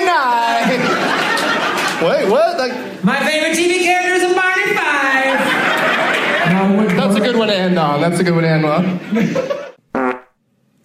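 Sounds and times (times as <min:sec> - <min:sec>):
laughter: 0:00.3 - 0:02.8, 0:04.9 - 0:07.4, 0:09.0 - 0:09.8
speech: 0:02.0 - 0:03.8, 0:07.7 - 0:09.6
fart: 0:09.9 - 0:10.4.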